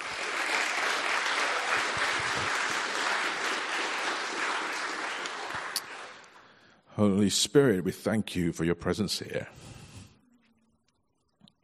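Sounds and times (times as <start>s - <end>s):
audience applause at a Christian gathering in northern England: 0.0s - 6.5s
speech: 7.0s - 9.7s.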